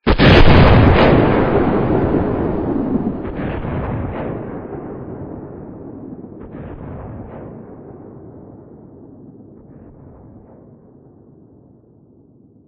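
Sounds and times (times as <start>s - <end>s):
gunshot: 0.0s - 8.9s, 9.5s - 11.0s.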